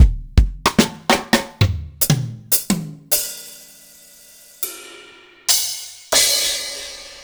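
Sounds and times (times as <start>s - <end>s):
Roland MV8800 standard drum kit: 0.0s - 7.2s.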